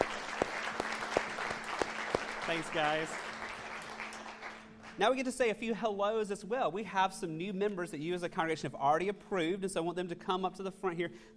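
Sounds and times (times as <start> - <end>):
audience clapping: 0.0 - 5.3
speech: 2.5 - 3.3, 5.0 - 11.3.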